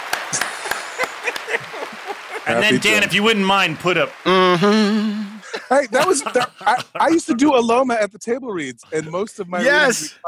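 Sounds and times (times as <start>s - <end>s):
scattered hand claps: 0.0s - 4.3s
laughter: 0.2s - 7.6s
speech: 1.5s - 10.2s.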